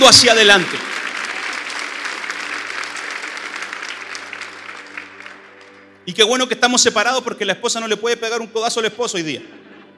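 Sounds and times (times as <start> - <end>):
audience applause: 0.0 - 6.0
speech: 0.1 - 0.9, 6.1 - 9.7.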